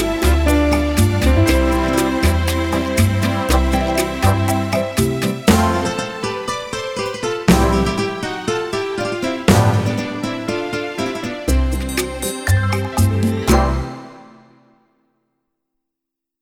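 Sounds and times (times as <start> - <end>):
rhumba music: 0.0 - 14.7.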